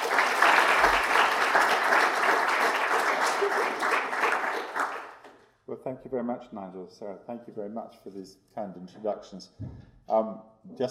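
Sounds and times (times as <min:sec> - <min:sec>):
audience applause welcoming a speaker to a lecture: 0:00.0 - 0:05.3
speech: 0:05.9 - 0:10.8.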